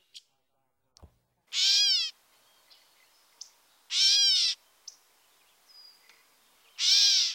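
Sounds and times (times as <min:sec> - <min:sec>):
gray catbird mewing calls: 0:01.5 - 0:02.1, 0:03.9 - 0:05.0, 0:05.9 - 0:07.2.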